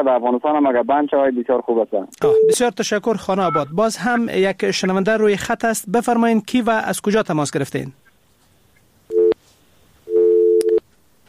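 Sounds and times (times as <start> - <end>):
speech: 0.0 - 8.0
telephone busy tone after phone call dropped: 9.1 - 9.4, 10.1 - 11.2.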